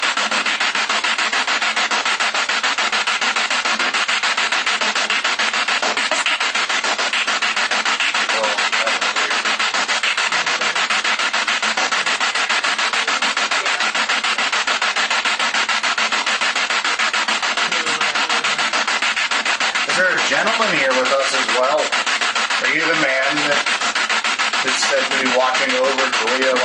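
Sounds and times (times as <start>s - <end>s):
spirit box radio sweep in a kitchen: 0.0s - 26.6s.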